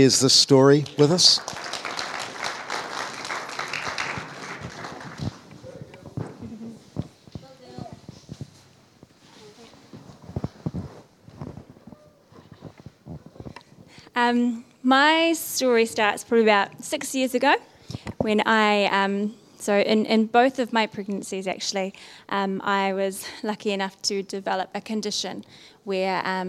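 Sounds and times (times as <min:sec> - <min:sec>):
speech: 0:00.0 - 0:01.7, 0:14.3 - 0:26.4
audience applause welcoming a speaker: 0:00.5 - 0:06.0.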